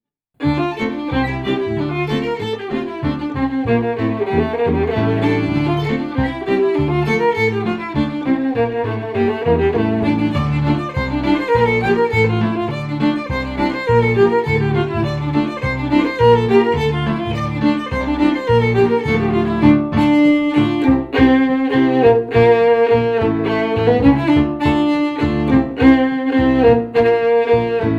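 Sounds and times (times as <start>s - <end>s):
fiddle: 0.4s - 27.9s
piano: 0.4s - 27.9s.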